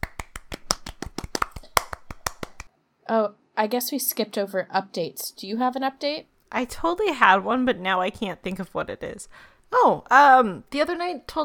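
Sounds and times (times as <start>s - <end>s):
soft golf claps: 0.0s - 2.7s
speech: 3.1s - 11.4s.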